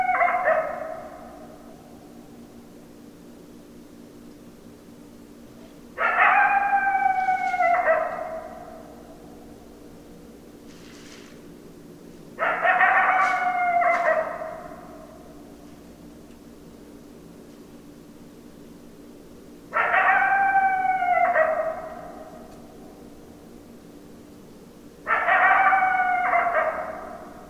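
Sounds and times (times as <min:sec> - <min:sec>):
coyotes howling: 0:00.0 - 0:02.0, 0:06.0 - 0:09.6, 0:12.4 - 0:15.5, 0:19.7 - 0:22.8, 0:25.0 - 0:27.4.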